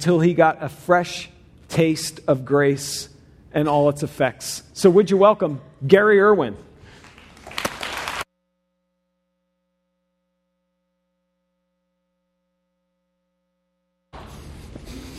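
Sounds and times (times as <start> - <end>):
speech: 0.0 - 6.7
audience clapping: 7.0 - 8.3.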